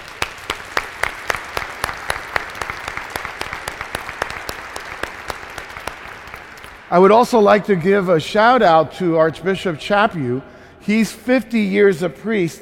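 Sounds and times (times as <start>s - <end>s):
audience applause: 0.0s - 6.9s
speech: 6.9s - 12.5s.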